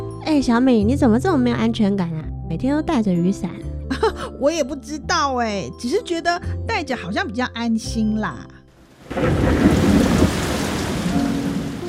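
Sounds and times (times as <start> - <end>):
speech: 0.3 - 9.6
sudden heavy rain: 8.8 - 11.8
low rumbling: 9.0 - 11.8.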